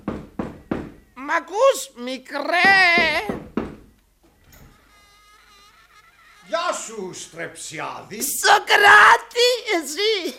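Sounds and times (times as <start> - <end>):
firm knocking on a door: 0.0 - 1.0, 2.6 - 3.9
speech: 1.3 - 3.4, 6.9 - 10.3.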